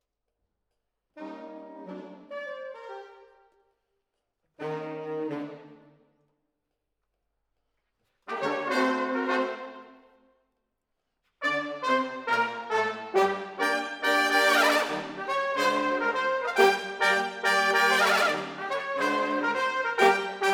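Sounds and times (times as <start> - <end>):
horns playing: 8.3 - 9.9, 11.4 - 20.5.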